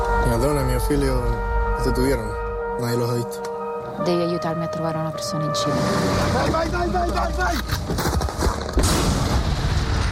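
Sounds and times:
speech: 0.3s - 8.2s
bomb explosions in a film trailer: 8.5s - 10.0s.

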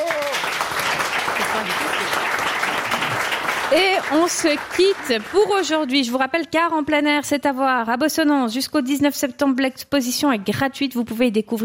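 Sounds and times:
audience applause: 0.0s - 6.0s
speech: 3.7s - 11.6s.

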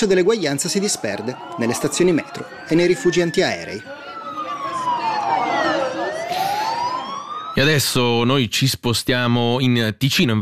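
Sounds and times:
speech: 0.0s - 4.0s, 7.6s - 10.3s
air raid siren wailing: 0.0s - 8.0s.

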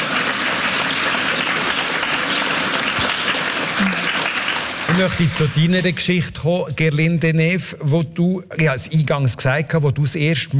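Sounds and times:
audience applause: 0.0s - 5.9s
speech: 5.0s - 10.5s.

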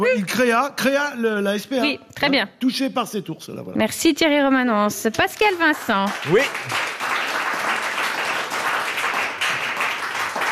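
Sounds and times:
speech: 0.0s - 7.0s
audience applause: 5.5s - 10.4s.

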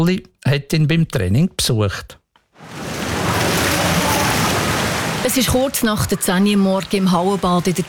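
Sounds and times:
speech: 0.0s - 2.8s, 5.2s - 7.8s
swim club swimmers splashing during morning training in an outdoor pool in Aarau: 2.6s - 7.8s.

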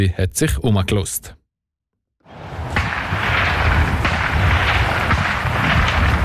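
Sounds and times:
speech: 0.0s - 1.4s
rifle gunfire at a shooting range: 2.4s - 6.2s.

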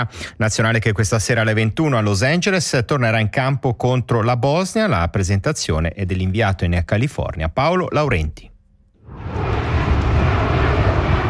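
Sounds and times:
speech: 0.0s - 8.5s
airplanes flying low over a Los Angeles stadium descending to land: 9.0s - 11.2s.

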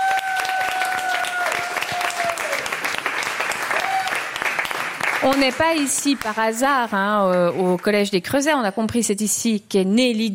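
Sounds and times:
audience applause: 0.0s - 7.9s
speech: 5.2s - 10.3s.

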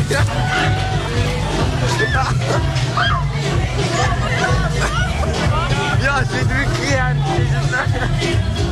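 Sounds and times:
people shouting on the Langstrasse nightlife street in Zurich: 0.0s - 6.2s
laughter: 0.0s - 8.6s.

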